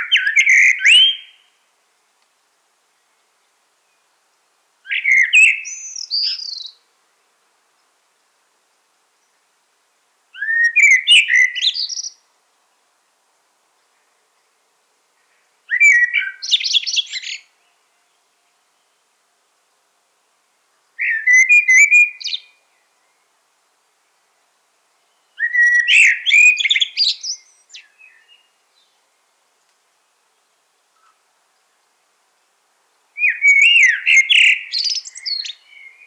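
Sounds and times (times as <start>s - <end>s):
common blackbird song: 0.0s - 1.5s, 4.9s - 6.8s, 10.4s - 12.2s, 15.7s - 18.2s, 21.0s - 23.2s, 25.1s - 29.0s, 33.2s - 36.0s
speech: 6.2s - 6.4s.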